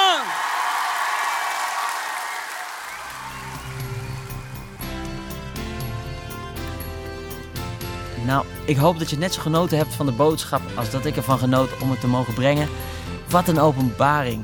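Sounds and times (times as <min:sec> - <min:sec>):
crowd applauding: 0:00.0 - 0:06.5
music with sustained tones: 0:03.0 - 0:14.4
speech: 0:08.2 - 0:14.4.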